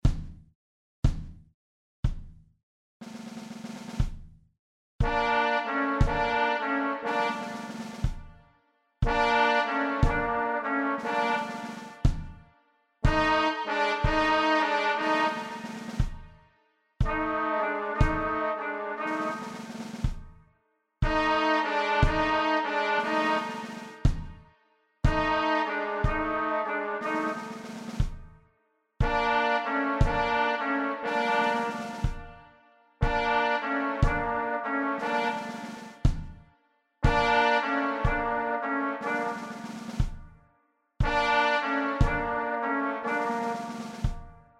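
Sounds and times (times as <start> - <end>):
drums: 0.0 - 4.4, 5.0 - 8.4, 9.0 - 16.4, 17.0 - 32.4, 33.0 - 40.4, 41.0 - 44.5
trombone: 5.0 - 8.2, 9.0 - 12.3, 13.1 - 16.2, 17.0 - 20.2, 21.0 - 24.3, 25.1 - 28.2, 29.0 - 32.4, 33.0 - 36.2, 37.0 - 40.2, 41.0 - 44.4
trumpet: 5.0 - 20.3, 21.0 - 28.4, 29.0 - 36.4, 37.0 - 40.2, 41.0 - 44.5.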